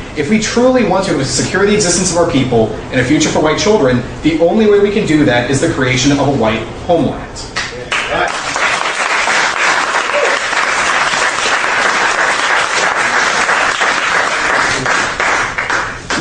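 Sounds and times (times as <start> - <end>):
speech: 0.2 - 8.5
audience applause: 7.9 - 16.1.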